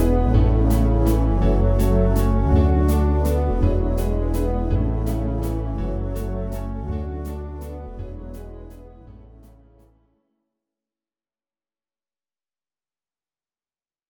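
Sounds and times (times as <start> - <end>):
synth pad: 0.0 - 9.7.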